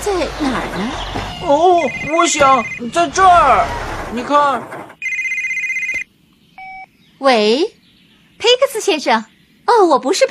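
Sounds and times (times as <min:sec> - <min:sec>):
speech: 0:00.0 - 0:04.8, 0:07.2 - 0:07.8, 0:08.4 - 0:10.2
mobile phone ringing: 0:01.8 - 0:02.8, 0:05.0 - 0:06.9.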